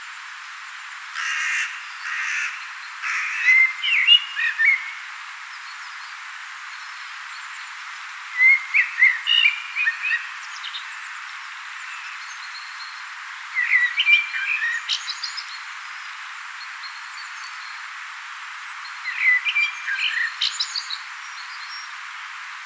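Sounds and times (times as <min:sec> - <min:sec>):
quiet hiss: 0:00.0 - 0:22.6
common blackbird singing: 0:01.6 - 0:05.0, 0:08.4 - 0:11.1, 0:11.8 - 0:15.6, 0:18.8 - 0:21.9.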